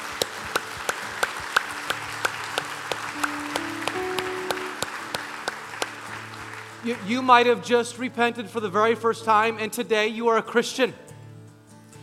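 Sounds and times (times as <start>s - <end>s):
audience clapping in unison: 0.0s - 7.6s
soft sustained low musical tones: 0.1s - 8.1s
speech: 6.8s - 11.0s.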